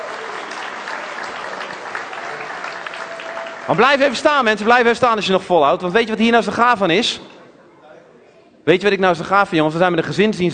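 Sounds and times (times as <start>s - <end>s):
audience applause: 0.0s - 5.1s
speech: 3.7s - 7.3s, 8.7s - 10.5s.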